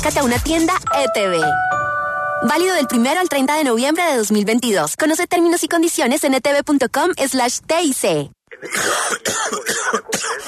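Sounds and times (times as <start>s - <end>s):
speech: 0.0s - 1.8s, 2.4s - 10.4s
ill man coughing harshly with trouble breathing: 8.5s - 10.4s.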